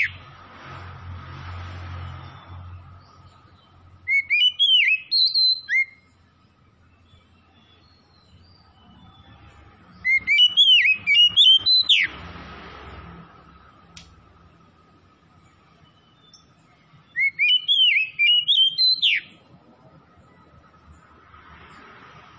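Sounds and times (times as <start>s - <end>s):
Oriental magpie-robin whistling song: 0.0s - 0.3s, 2.2s - 12.2s, 15.4s - 20.7s.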